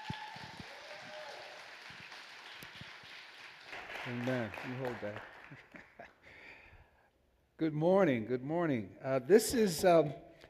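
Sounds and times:
crowd applauding: 0.0 - 6.0
speech: 4.1 - 5.6, 7.6 - 10.3.

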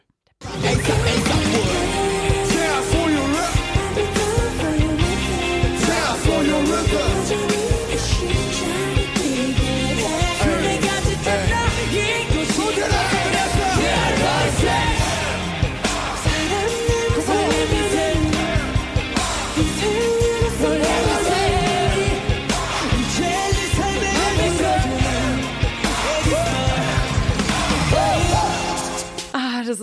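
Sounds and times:
hip-hop track: 0.4 - 29.3
group vocals shouting over a beat: 5.7 - 7.8, 10.2 - 29.2.

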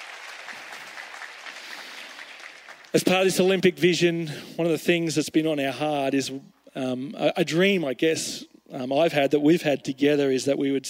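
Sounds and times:
round of applause: 0.0 - 3.4
speech: 2.9 - 10.8.

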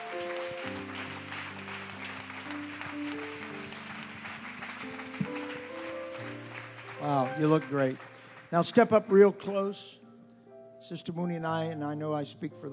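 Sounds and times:
audience applause welcoming a freshman class: 0.0 - 9.3
speech: 7.0 - 10.0, 10.8 - 12.7.

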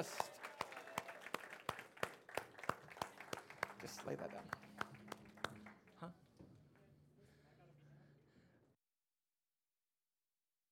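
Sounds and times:
audience applauding: 0.0 - 6.2
speech: 3.8 - 4.6, 6.0 - 6.2.

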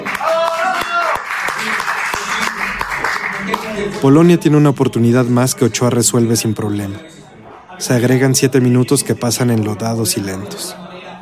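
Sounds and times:
bar patrons applauding: 0.0 - 4.7
speech: 3.8 - 10.9.

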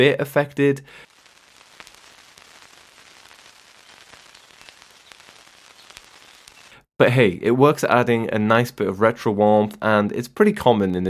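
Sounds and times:
speech: 0.0 - 1.1, 7.0 - 11.0
vinyl record static crackle: 0.0 - 6.9
soft constant hiss: 0.5 - 6.9
sharp pops and clicks: 1.0 - 6.8.

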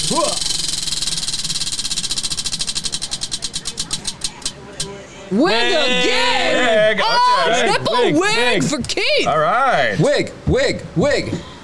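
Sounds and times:
prize wheel spun during a Halloween game ticking: 0.0 - 4.6
speech: 5.3 - 11.5
laughter: 5.6 - 8.8.

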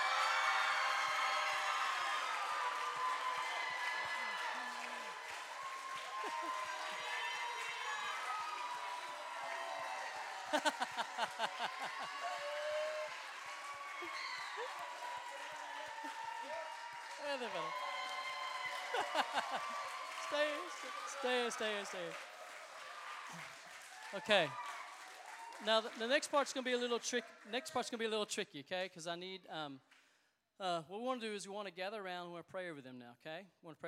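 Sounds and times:
standing ovation applause and cheering: 0.0 - 28.2
laughter: 6.1 - 7.3, 9.4 - 16.5, 18.6 - 22.0
speech: 10.5 - 12.6, 14.0 - 17.9, 18.9 - 22.3, 23.3 - 24.6, 25.6 - 30.0, 30.6 - 33.8.

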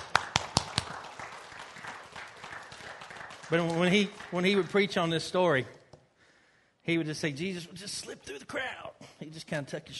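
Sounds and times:
hand claps: 0.0 - 5.0
speech: 3.5 - 5.8, 6.9 - 9.9.

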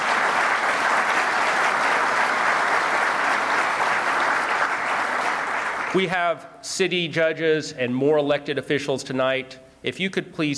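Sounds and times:
audience round of applause: 0.0 - 6.0
speech: 6.0 - 10.5.

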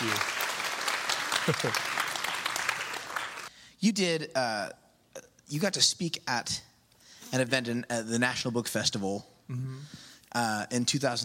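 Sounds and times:
audience applause: 0.0 - 3.5
speech: 1.5 - 1.9, 3.8 - 4.8, 5.5 - 6.7, 7.3 - 11.2.

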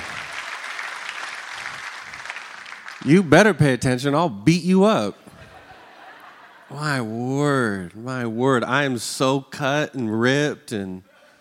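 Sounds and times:
audience applause at Life Center church welcoming a pastor: 0.0 - 3.4
speech: 3.0 - 5.2, 6.7 - 11.1
laughter: 5.2 - 7.8.

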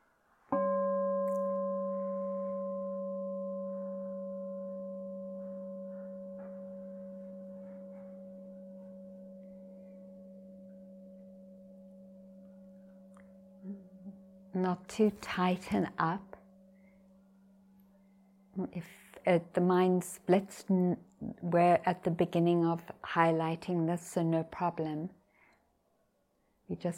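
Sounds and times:
meditation bell ringing: 0.5 - 18.6
speech: 14.6 - 16.3, 18.8 - 25.2, 26.7 - 26.9.

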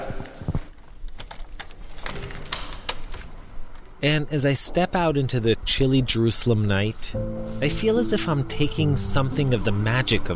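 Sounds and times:
door being locked: 1.2 - 3.4
speech: 4.0 - 10.3.

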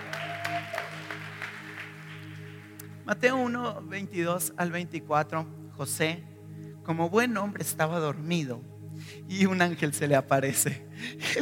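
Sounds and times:
audience applause: 0.0 - 2.6
speech: 3.1 - 6.3, 6.9 - 11.4.

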